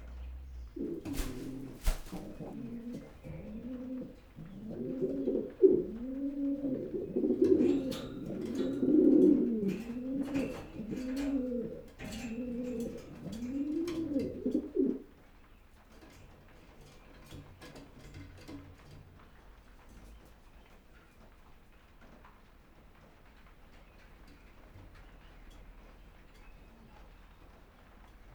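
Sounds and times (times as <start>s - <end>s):
pigeon cooing: 0.0s - 15.2s.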